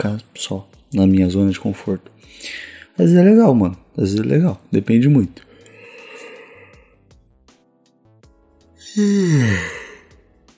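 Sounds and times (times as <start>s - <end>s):
speech: 0.0s - 5.5s, 8.9s - 9.8s
person yawning: 8.8s - 10.1s.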